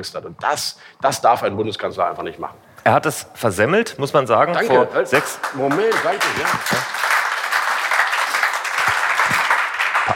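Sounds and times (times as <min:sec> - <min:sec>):
speech: 0:00.0 - 0:07.1
audience applause: 0:04.8 - 0:10.1.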